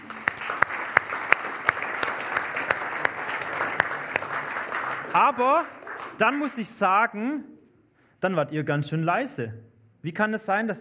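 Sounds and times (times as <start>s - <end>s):
audience applause: 0.0s - 6.7s
speech: 5.2s - 7.5s, 8.2s - 10.7s.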